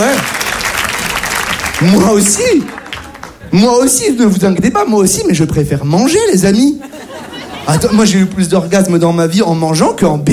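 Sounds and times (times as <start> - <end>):
audience applause at a stand-up comedy show: 0.0 - 3.5
speech: 1.8 - 2.8, 3.5 - 7.0, 7.7 - 10.3
laughter: 6.6 - 8.5.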